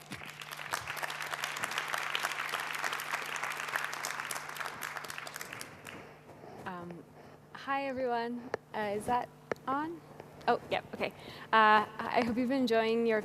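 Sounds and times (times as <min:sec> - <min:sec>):
audience applause: 0:00.0 - 0:06.2
speech: 0:07.7 - 0:13.2.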